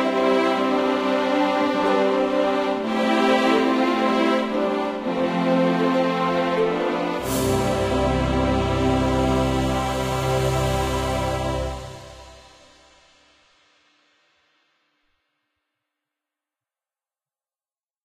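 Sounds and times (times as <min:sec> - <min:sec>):
instrumental Franconian hymn: 0:00.0 - 0:12.6.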